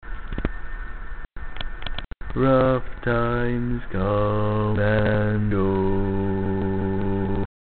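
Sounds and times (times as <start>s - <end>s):
barbershop bass voice singing: 2.3s - 7.5s.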